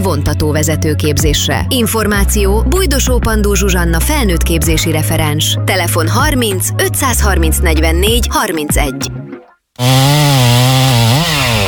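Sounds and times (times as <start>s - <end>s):
speech: 0.2s - 10.2s
chainsaw cutting down a large pine tree: 9.8s - 11.6s.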